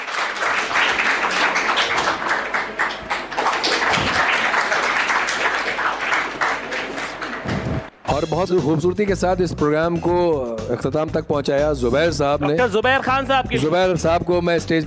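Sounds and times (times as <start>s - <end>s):
audience applause: 0.0s - 7.9s
speech: 8.2s - 14.8s.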